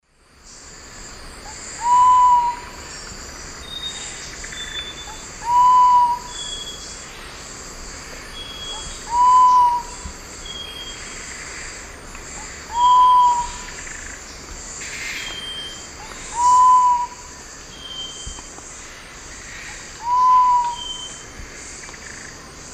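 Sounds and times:
Sapphire quail-dove Geotrygon saphirina hooted whistle song in eastern lowlands of South America: 0:01.8 - 0:02.8, 0:04.8 - 0:06.6, 0:08.6 - 0:10.0, 0:12.7 - 0:13.7, 0:15.4 - 0:18.2, 0:20.0 - 0:21.2.

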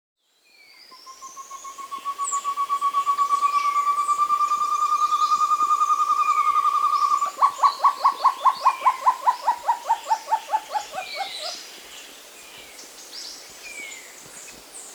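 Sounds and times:
short-tailed antthrush singing soft rising hoots in South America: 0:00.8 - 0:11.6.

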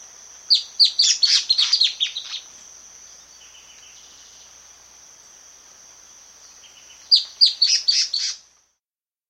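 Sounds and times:
Long-Tailed Antbird calling in South America: 0:00.5 - 0:02.5, 0:07.1 - 0:08.4.

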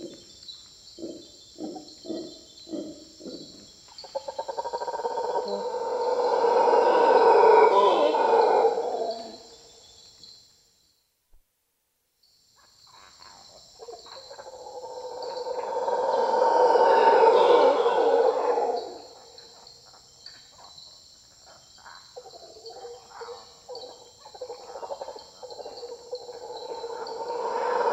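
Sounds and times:
Mantled howler monkey howls in South American rainforest: 0:01.0 - 0:09.5, 0:13.8 - 0:19.6, 0:22.2 - 0:27.9.

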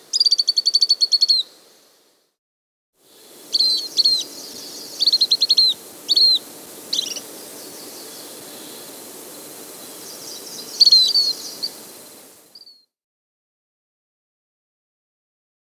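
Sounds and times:
Lemon-browed flycatcher Conopias cinchoneti calling in the Andes: 0:00.0 - 0:01.6, 0:03.1 - 0:12.8.

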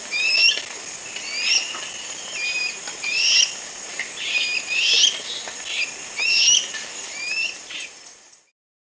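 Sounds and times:
Dusky-capped Flycatcher calling in South America: 0:00.0 - 0:08.5.

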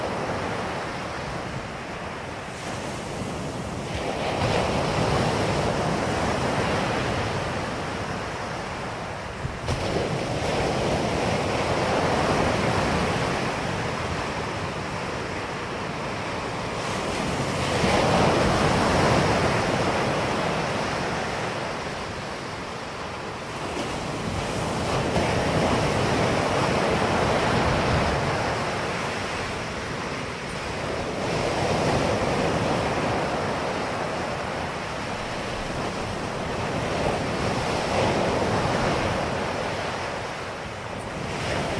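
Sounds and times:
ocean waves crashing: 0:00.0 - 0:41.7.

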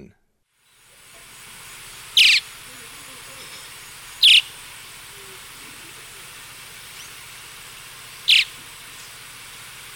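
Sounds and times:
Gray-breasted Martin calls, short gurgling chirps, eastern lowlands of South America: 0:02.1 - 0:02.5, 0:03.3 - 0:07.3, 0:08.1 - 0:09.3.

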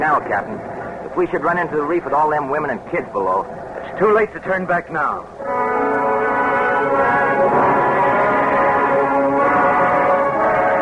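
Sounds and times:
speech: 0:00.0 - 0:05.9
Lime Rock lighthouse foghorn blowing: 0:05.4 - 0:10.8.

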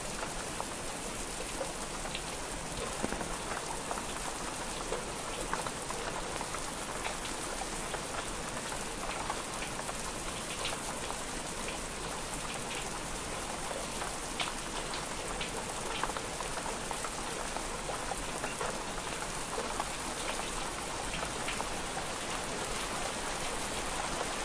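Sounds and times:
light gentle rain: 0:00.0 - 0:24.4.

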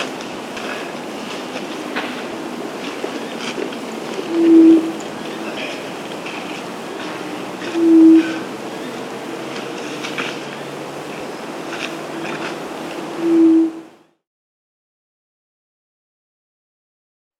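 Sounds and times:
White-throated quail-dove Geotrygon frenata calling in the Andes: 0:03.1 - 0:06.4, 0:07.0 - 0:09.0.

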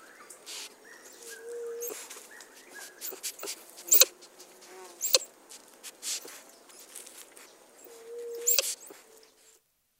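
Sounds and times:
White-nosed Coati in South America: 0:01.2 - 0:04.1, 0:05.0 - 0:05.3, 0:07.8 - 0:09.2.

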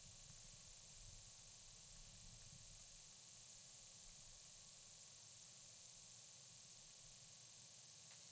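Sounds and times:
Slender meadow katydid song in North America: 0:00.0 - 0:08.3.

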